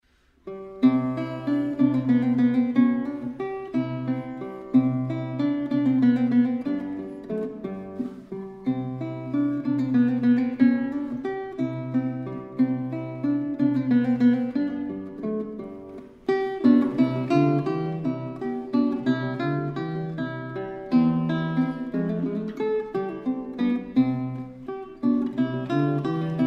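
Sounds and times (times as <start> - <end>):
guitar: 0.0 - 26.4.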